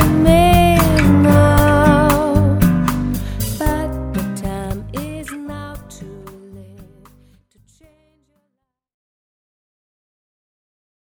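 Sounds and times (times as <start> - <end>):
person singing: 0.0 - 7.2.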